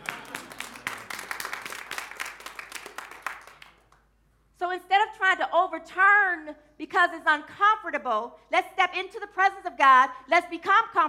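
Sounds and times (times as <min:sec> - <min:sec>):
clapping while holding Bibles: 0:00.0 - 0:04.1
speech: 0:05.8 - 0:11.0.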